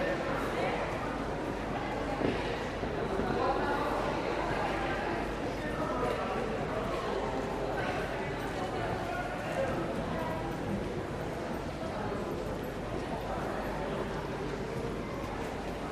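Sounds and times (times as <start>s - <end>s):
train station ambience: 0.0s - 15.9s.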